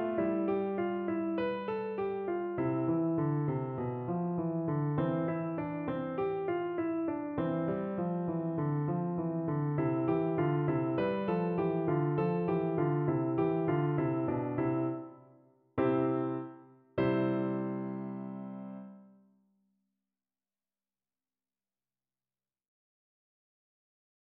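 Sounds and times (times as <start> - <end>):
piano etude: 0.0 - 19.2.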